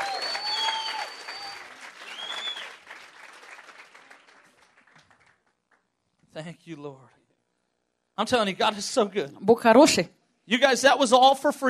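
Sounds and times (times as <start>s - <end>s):
audience applause: 0.0s - 5.8s
speech: 6.4s - 7.2s, 8.2s - 11.6s.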